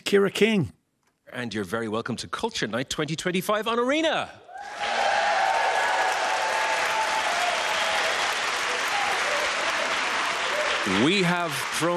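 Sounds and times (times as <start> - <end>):
speech: 0.1 - 4.9, 10.8 - 11.9
faint cheers and whistles: 4.6 - 11.2
live studio audience applauding: 4.6 - 11.9.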